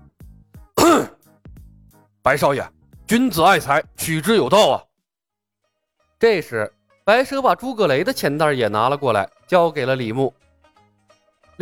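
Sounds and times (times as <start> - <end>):
heavy cough: 0.8 - 1.2
speech: 2.3 - 4.9, 6.2 - 10.4.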